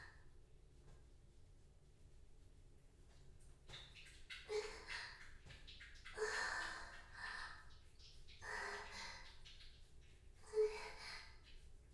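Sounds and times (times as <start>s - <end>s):
person urinating in a bath: 3.7s - 11.9s
wet squelching from masturbation in a bath: 3.7s - 11.9s.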